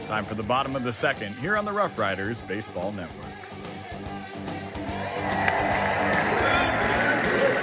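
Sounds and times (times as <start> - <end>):
speech: 0.1 - 3.4
crowd cheering at baseball stadium: 4.6 - 7.6.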